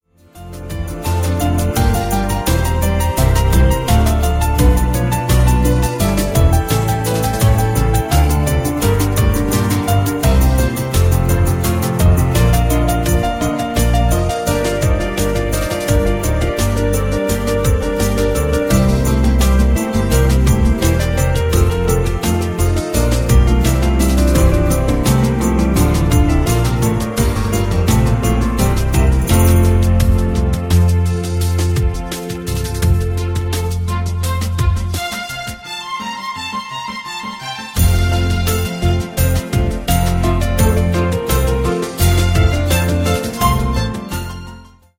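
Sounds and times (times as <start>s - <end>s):
classical piece in F major: 0.2s - 44.9s.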